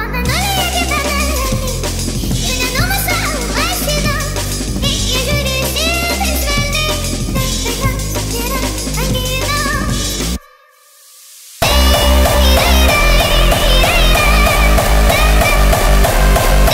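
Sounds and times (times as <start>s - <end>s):
hardstyle music: 0.2s - 10.4s, 11.6s - 16.7s.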